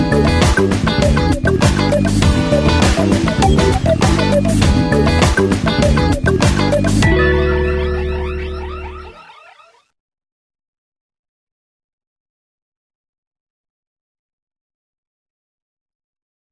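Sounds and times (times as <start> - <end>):
regional trance music: 0.0 - 9.7.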